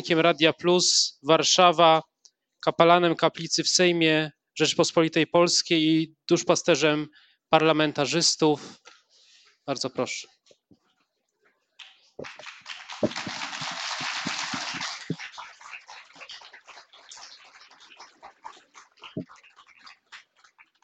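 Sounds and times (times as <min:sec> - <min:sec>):
speech: 0:00.0 - 0:08.9, 0:09.6 - 0:10.4, 0:12.2 - 0:13.4
audience applause: 0:12.2 - 0:20.8.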